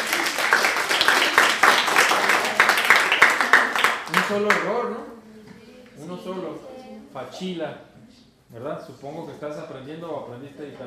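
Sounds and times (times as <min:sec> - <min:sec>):
applause for a student in an Italian language class: 0:00.0 - 0:04.7
speech: 0:04.3 - 0:05.1, 0:06.0 - 0:10.8.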